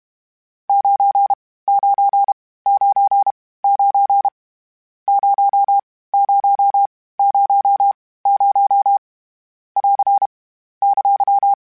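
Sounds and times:
Morse code CW code groups: 0.7 - 4.3, 5.1 - 9.0, 9.8 - 10.3, 10.8 - 11.6.

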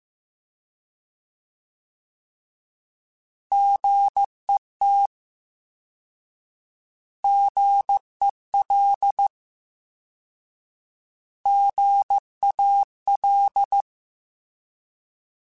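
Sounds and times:
Morse code CW code groups: 3.5 - 5.1, 7.3 - 9.3, 11.5 - 13.9.

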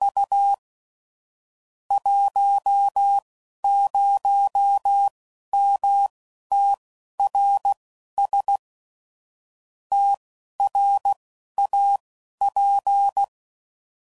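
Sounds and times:
ham radio CW Morse code groups at 15 WPM: 1.9 - 8.6, 9.9 - 13.3.

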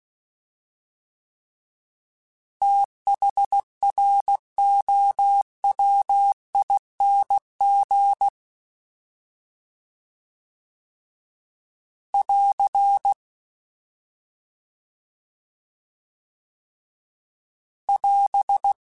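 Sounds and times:
fast CW Morse code groups: 2.6 - 8.3, 12.2 - 13.2, 17.9 - 18.8.

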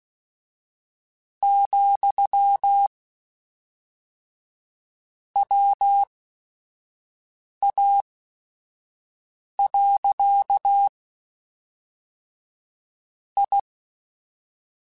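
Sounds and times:
Morse code radio QSOs: 1.4 - 2.9, 5.4 - 6.1, 9.7 - 10.9, 13.4 - 13.7.

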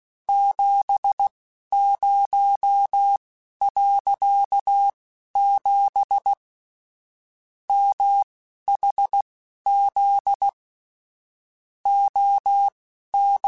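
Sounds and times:
Morse code radio QSOs: 0.3 - 6.4, 7.7 - 10.6, 11.9 - 13.4.

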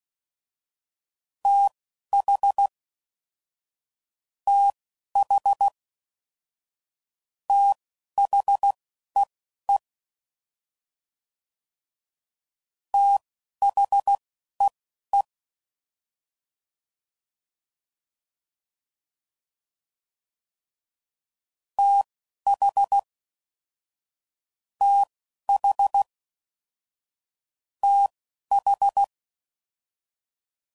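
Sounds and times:
Morse code CW code groups: 1.5 - 2.7, 4.5 - 5.7, 7.5 - 8.8, 13.0 - 14.2, 21.8 - 23.0, 24.8 - 26.1, 27.8 - 29.1.

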